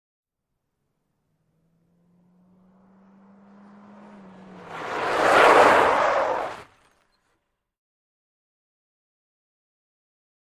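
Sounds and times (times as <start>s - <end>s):
small compact car 180 skid: 1.5s - 7.3s.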